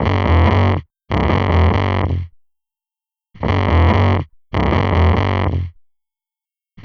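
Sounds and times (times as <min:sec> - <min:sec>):
fuzz bass: 0:00.0 - 0:02.3, 0:03.4 - 0:05.8.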